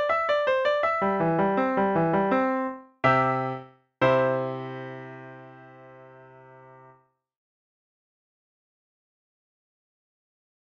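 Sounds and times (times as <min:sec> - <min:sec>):
overture arranged for solo piano: 0:00.0 - 0:07.0.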